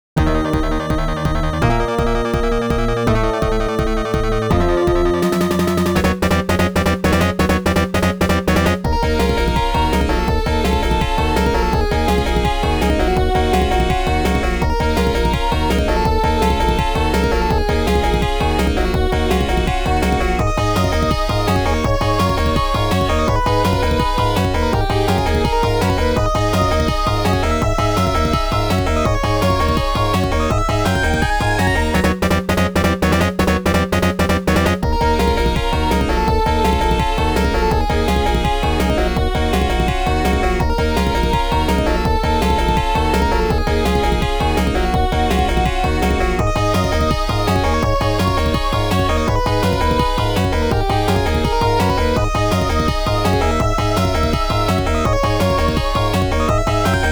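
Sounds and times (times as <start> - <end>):
boss battle game music: 0.2 - 57.1.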